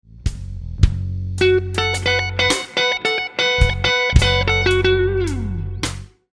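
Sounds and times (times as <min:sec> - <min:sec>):
guitar lick: 0:01.4 - 0:06.2.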